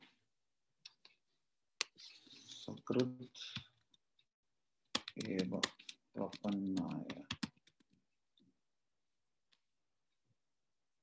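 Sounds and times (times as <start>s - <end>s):
speech: 2.7s - 3.6s, 5.3s - 7.3s
keyboard clicks typing a search phrase: 4.9s - 8.0s.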